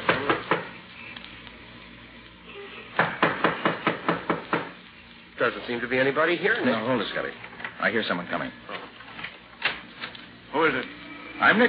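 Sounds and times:
knocking on a door: 0:03.0 - 0:04.7
speech: 0:05.4 - 0:08.7, 0:10.6 - 0:11.6.

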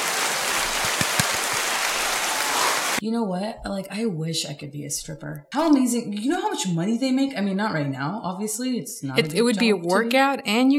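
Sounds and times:
quick soft hand claps: 0:00.6 - 0:02.2
speech: 0:03.0 - 0:10.7.

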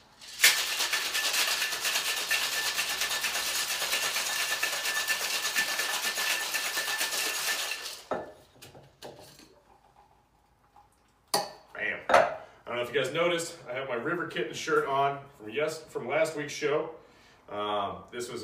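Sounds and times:
cocktail shaker with ice being shaken: 0:00.0 - 0:08.1
speech: 0:12.9 - 0:18.4.

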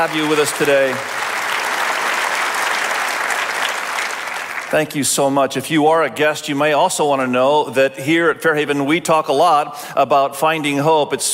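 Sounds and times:
speech: 0:00.0 - 0:01.2, 0:04.7 - 0:11.3
crowd applause: 0:00.0 - 0:05.0.

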